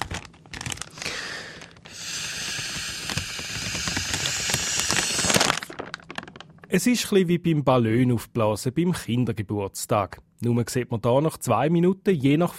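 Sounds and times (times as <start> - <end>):
unpacking plastic breathalyzer test kit: 0.0 - 6.8
speech: 6.7 - 12.5.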